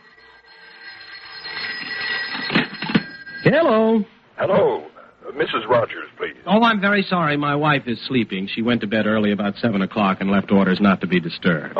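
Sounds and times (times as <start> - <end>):
telephone ringing: 0.0 - 4.0
speech: 3.4 - 11.7.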